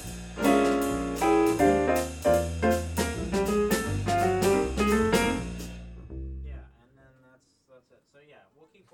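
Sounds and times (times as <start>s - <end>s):
jazz music: 0.0s - 6.6s.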